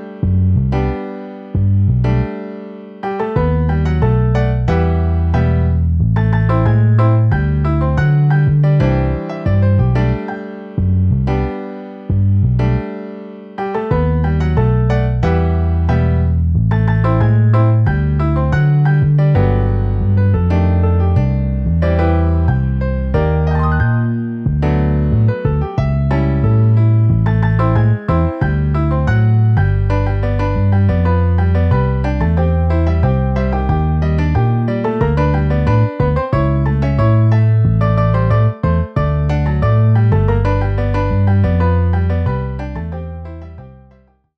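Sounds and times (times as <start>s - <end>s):
bass: 0.0s - 2.4s, 3.2s - 13.0s, 13.8s - 44.3s
piano: 0.0s - 44.3s.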